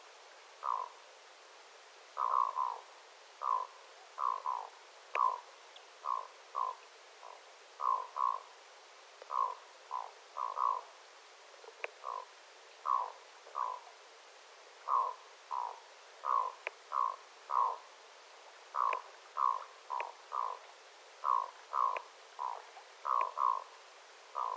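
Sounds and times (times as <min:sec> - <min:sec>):
low steady hiss: 0:00.0 - 0:24.5
black-throated loon croaking: 0:00.6 - 0:01.0, 0:02.2 - 0:05.4, 0:06.0 - 0:08.5, 0:09.3 - 0:10.9, 0:11.8 - 0:13.9, 0:14.8 - 0:17.9, 0:18.7 - 0:20.6, 0:21.2 - 0:23.7, 0:24.4 - 0:24.5
faint clicks: 0:05.1 - 0:05.9, 0:11.7 - 0:12.1, 0:16.5 - 0:16.9, 0:18.8 - 0:23.5.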